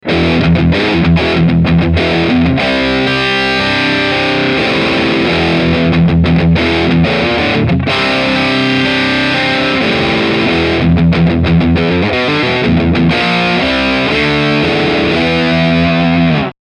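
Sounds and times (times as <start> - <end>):
medium-gain distorted guitar riff: 0.0 - 16.6.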